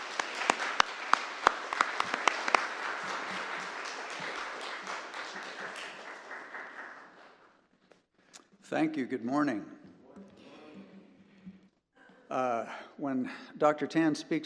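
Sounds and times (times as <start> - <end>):
church service audience applause welcoming guests: 0.0 - 7.6
speech: 8.7 - 9.8, 12.4 - 14.4.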